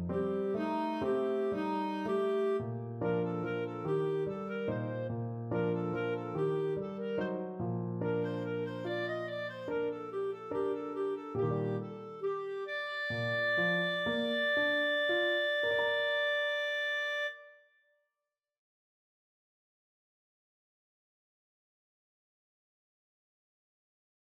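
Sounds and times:
flute and clarinet duet: 0:00.0 - 0:17.6.

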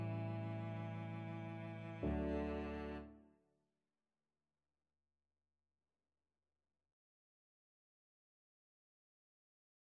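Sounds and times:
berceuse played on cello: 0:00.0 - 0:03.2.

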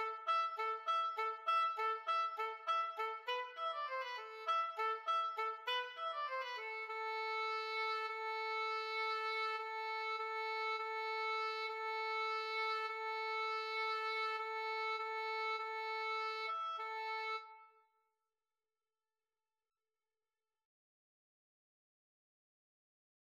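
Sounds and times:
two oboes playing: 0:00.0 - 0:17.7.

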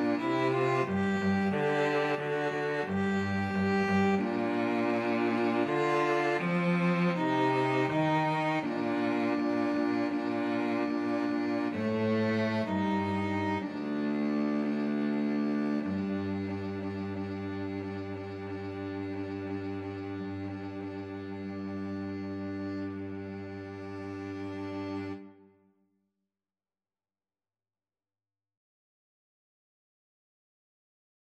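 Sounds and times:
cello: 0:00.0 - 0:25.6
two violins: 0:00.0 - 0:25.6.

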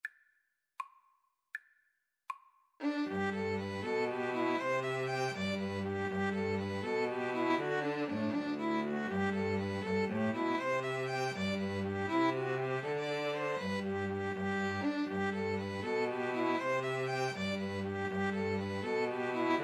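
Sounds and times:
cello: 0:02.8 - 0:19.6
two violins: 0:02.8 - 0:19.6.

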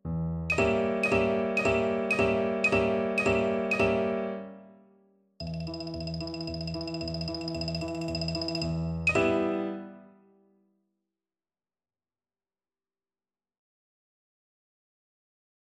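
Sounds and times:
xylophone melody: 0:00.5 - 0:04.2, 0:05.4 - 0:09.7.

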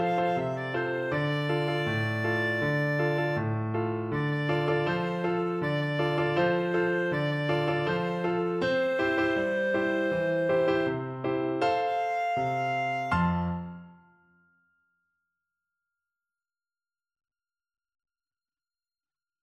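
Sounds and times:
clarinet: 0:00.0 - 0:14.1.

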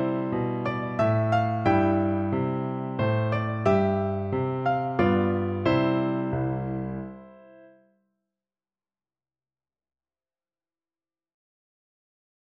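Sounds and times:
national anthem piano duet: 0:00.0 - 0:07.9.

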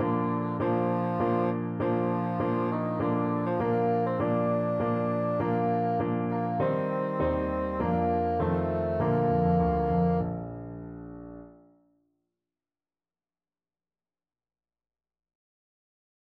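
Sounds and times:
bassoon: 0:00.0 - 0:11.5.

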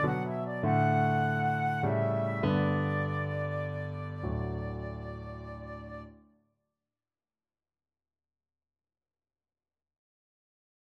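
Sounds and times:
flute and cello duet: 0:00.0 - 0:06.1.

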